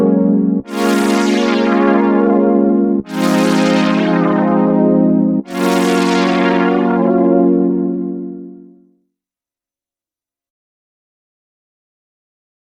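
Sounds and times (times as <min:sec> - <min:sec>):
poly synth: 0:00.0 - 0:08.8.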